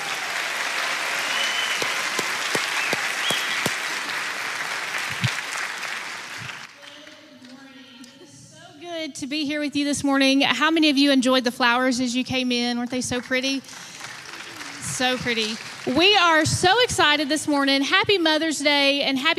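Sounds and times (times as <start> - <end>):
church congregation applause welcoming new leaders at a Sunday morning service: 0.0 - 7.5, 13.5 - 16.4
speech: 9.2 - 13.9, 15.0 - 19.3.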